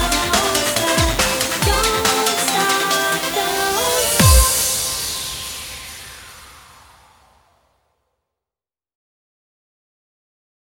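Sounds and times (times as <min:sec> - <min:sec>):
drum beat: 0:00.0 - 0:05.4.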